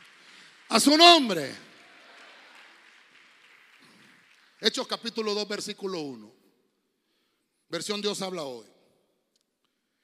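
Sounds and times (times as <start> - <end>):
audience clapping: 0.0 - 6.2
speech: 0.7 - 1.7, 4.7 - 6.4, 7.7 - 8.8.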